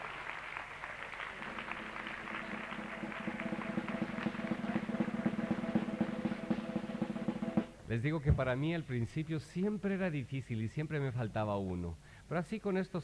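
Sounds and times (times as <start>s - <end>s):
audience applause: 0.0s - 6.6s
speech: 7.9s - 13.0s.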